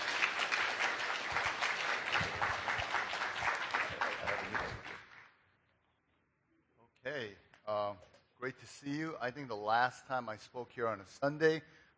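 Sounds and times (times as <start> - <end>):
congregation applauding at a Sunday church service in a high school: 0.0 - 5.2
speech: 8.5 - 11.8.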